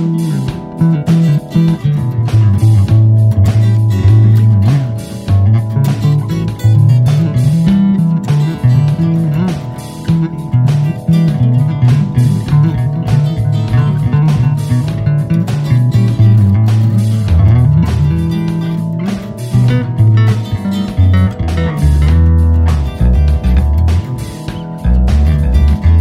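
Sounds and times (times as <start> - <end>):
blues funk bass solo in E: 0.0 - 25.9.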